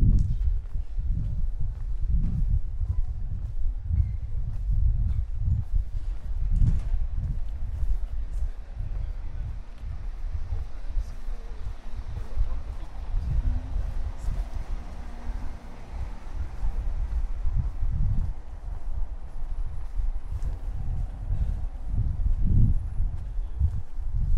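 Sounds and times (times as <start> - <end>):
steady low rumble in Prague: 0.0 - 24.3
faint voices: 5.2 - 24.3.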